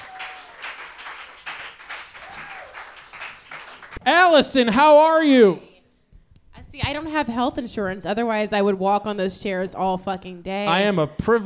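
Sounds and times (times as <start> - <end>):
crowd clapping: 0.0 - 4.2
speech: 4.0 - 5.7, 6.8 - 11.4.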